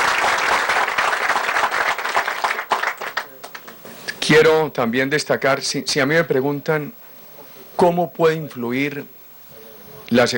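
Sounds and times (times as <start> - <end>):
crowd applauding: 0.0 - 3.9
speech: 4.3 - 7.0, 7.8 - 9.2, 10.1 - 10.3.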